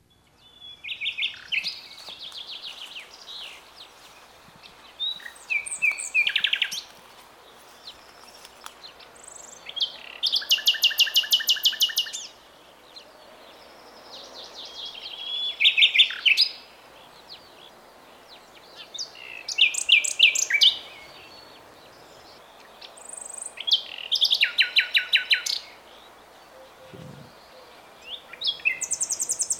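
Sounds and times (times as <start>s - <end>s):
nightingale singing a varied song: 0.0s - 12.4s, 13.4s - 29.5s.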